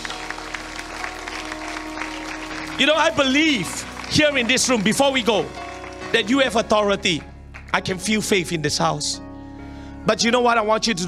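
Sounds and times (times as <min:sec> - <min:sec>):
audience clapping: 0:00.0 - 0:08.4
speech: 0:02.8 - 0:09.3, 0:10.0 - 0:11.0.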